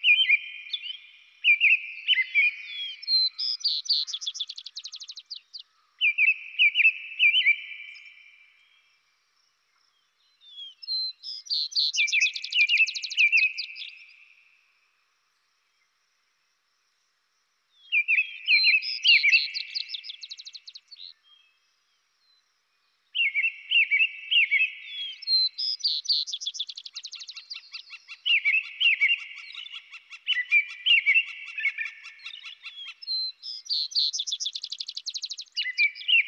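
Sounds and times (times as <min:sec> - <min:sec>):
robin singing: 0:00.0 - 0:08.8, 0:09.9 - 0:14.4, 0:17.8 - 0:21.6, 0:23.1 - 0:36.2.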